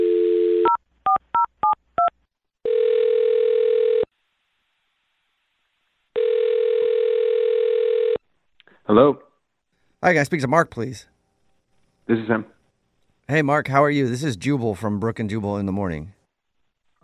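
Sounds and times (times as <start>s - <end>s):
telephone dial tone: 0.0s - 0.8s, 2.6s - 4.1s, 6.2s - 8.2s
speech: 8.9s - 9.2s, 10.0s - 11.1s, 12.1s - 12.6s, 13.3s - 16.2s.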